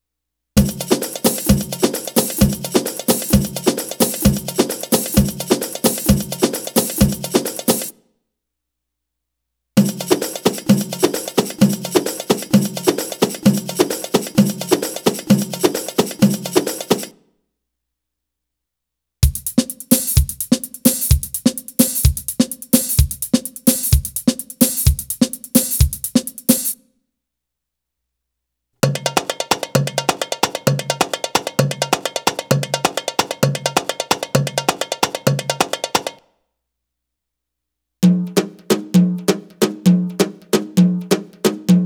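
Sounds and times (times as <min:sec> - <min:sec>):
Arabic rhythm percussion: 0:00.6 - 0:07.9, 0:09.8 - 0:17.1, 0:19.2 - 0:26.8, 0:28.8 - 0:36.2, 0:38.0 - 0:41.8.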